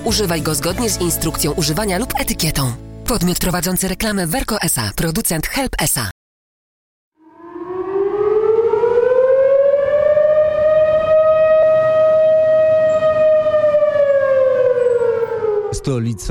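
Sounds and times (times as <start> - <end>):
speech: 0.0 - 6.1, 15.8 - 16.3
civil defense air raid siren test: 7.2 - 16.3.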